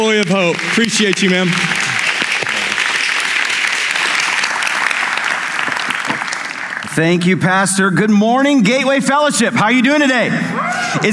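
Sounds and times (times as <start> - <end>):
speech: 0.0 - 1.8, 7.0 - 11.1
audience applause at a church service: 0.0 - 7.0.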